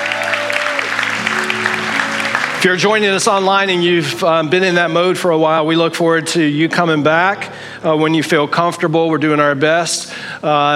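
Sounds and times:
applause: 0.0 - 4.2
speech: 2.6 - 10.7.

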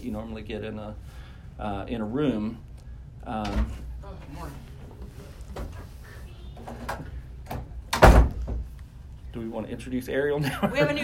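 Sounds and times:
speech: 0.0 - 4.7, 9.4 - 11.0
door opening: 5.5 - 8.7
laughter: 10.4 - 11.0.

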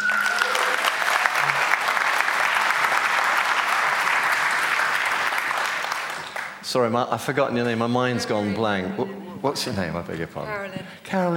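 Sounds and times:
crowd applause: 0.0 - 6.7
speech: 6.7 - 11.3.

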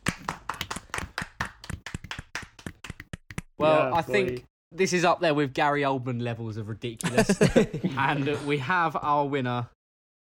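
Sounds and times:
hand clapping from a few people: 0.0 - 4.4
speech: 3.6 - 9.8
laughter: 7.0 - 8.7.

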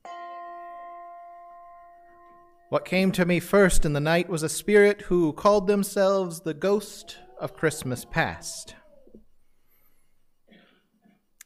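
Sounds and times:
bell striking one at night: 0.0 - 3.2
speech: 2.7 - 8.8.

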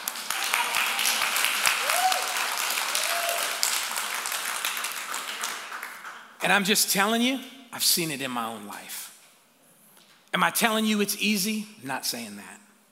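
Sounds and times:
audience clapping: 0.0 - 6.6
speech: 6.4 - 9.0, 10.3 - 12.6.

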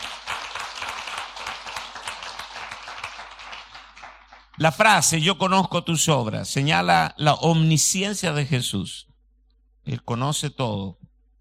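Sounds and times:
audience applause: 0.0 - 4.9
speech: 4.6 - 9.1, 9.8 - 11.0.

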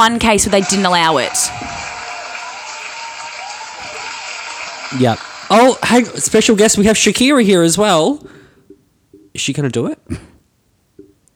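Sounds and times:
speech: 0.0 - 1.9, 4.9 - 8.4, 9.4 - 10.3
clapping sound effect: 0.2 - 6.8.

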